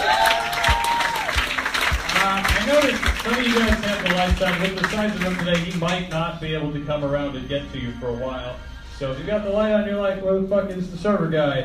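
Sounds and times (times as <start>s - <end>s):
audience applause in a bar: 0.0s - 6.0s
speech: 2.8s - 11.6s.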